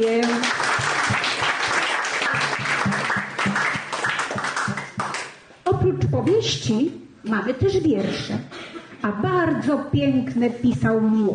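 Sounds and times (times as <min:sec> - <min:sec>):
crowd applause: 0:00.0 - 0:05.4
speech: 0:06.2 - 0:11.3.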